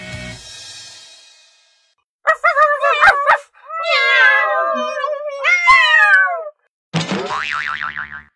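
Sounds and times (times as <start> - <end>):
cat meowing: 2.3 - 6.6
choppy yelps: 2.3 - 6.6.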